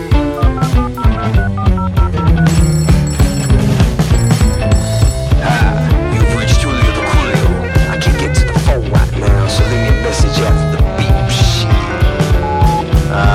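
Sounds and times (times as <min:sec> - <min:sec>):
busy music with steady drums and thick bass line: 0:00.0 - 0:13.3
telephone ringing: 0:00.4 - 0:05.5.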